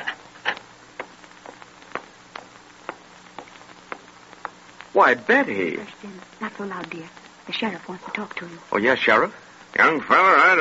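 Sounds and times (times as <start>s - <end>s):
footsteps approaching down a long stone-flagged corridor: 0.0s - 8.4s
speech: 5.0s - 10.6s.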